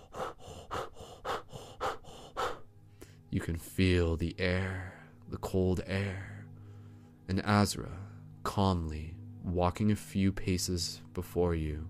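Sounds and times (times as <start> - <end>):
rhythmic panting breath: 0.0 - 3.3
speech: 3.3 - 6.4, 7.3 - 11.8.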